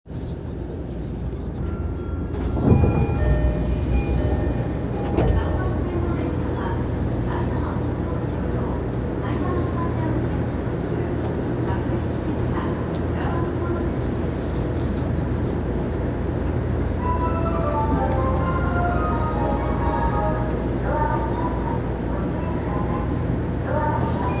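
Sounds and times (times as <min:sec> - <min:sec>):
train: 0:00.1 - 0:24.3.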